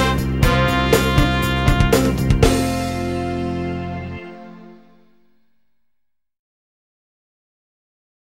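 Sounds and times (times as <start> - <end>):
trumpet: 0.0 - 5.8.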